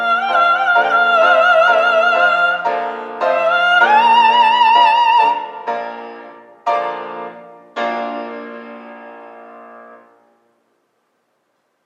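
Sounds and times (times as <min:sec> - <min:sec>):
woman singing coloratura opera aria: 0:00.0 - 0:05.7.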